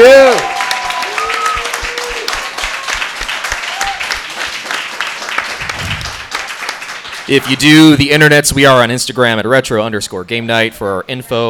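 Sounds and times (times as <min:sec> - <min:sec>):
live audience applause: 0:00.0 - 0:08.1
speech: 0:07.3 - 0:11.4.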